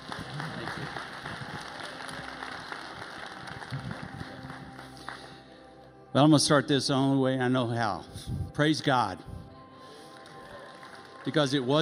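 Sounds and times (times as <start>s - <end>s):
church congregation applauding to welcome a speaker: 0.0s - 5.8s, 9.8s - 11.8s
speech: 6.2s - 9.3s, 11.2s - 11.8s.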